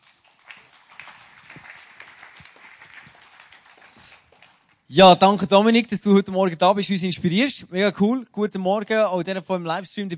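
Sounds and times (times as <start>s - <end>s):
audience applause: 0.0s - 4.8s
speech: 4.9s - 10.1s.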